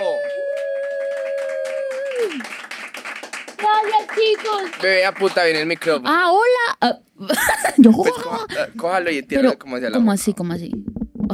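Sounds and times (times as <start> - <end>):
loud sustained whistle or whoop: 0.0 - 2.5
audience clapping for a guest: 0.0 - 6.1
speech: 2.2 - 2.6, 3.6 - 11.3
laughter: 7.3 - 8.9.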